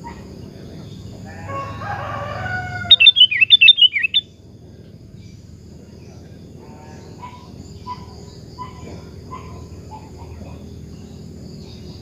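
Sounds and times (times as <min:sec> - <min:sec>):
drawn-out bird whistles: 0:02.4 - 0:04.3
sooty-headed bulbul song: 0:02.4 - 0:04.4.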